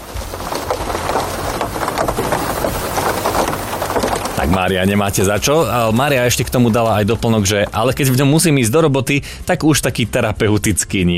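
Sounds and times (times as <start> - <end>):
heavy rain: 0.0 - 8.1
speech: 4.4 - 11.1.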